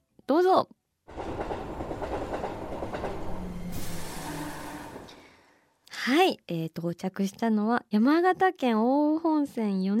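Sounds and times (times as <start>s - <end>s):
speech: 0.3s - 1.2s, 6.0s - 9.9s
wheels clattering over rail joints: 1.1s - 5.2s
train rolling in with rumbling roar: 1.1s - 5.6s.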